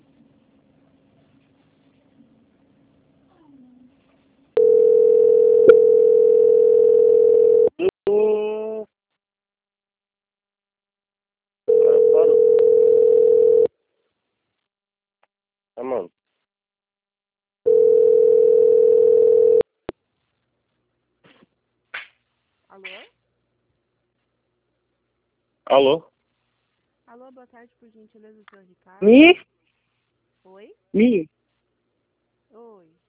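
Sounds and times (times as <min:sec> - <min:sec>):
telephone tone while a call is being transferred: 0:04.6 - 0:07.8, 0:11.7 - 0:13.7, 0:17.7 - 0:19.6
voice fragments: 0:07.8 - 0:08.9
speech: 0:25.8 - 0:26.1, 0:27.4 - 0:29.5, 0:30.5 - 0:31.4.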